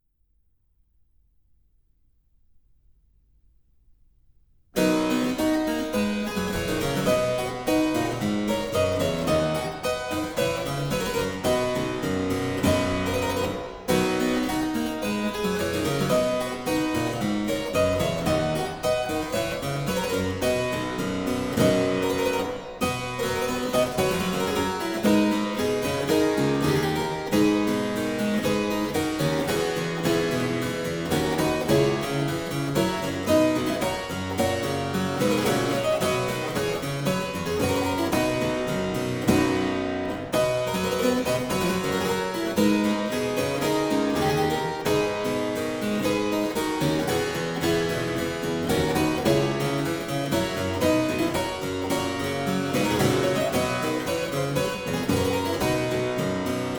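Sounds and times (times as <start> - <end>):
harpsichord playing aria variations in C major: 4.8 - 56.7.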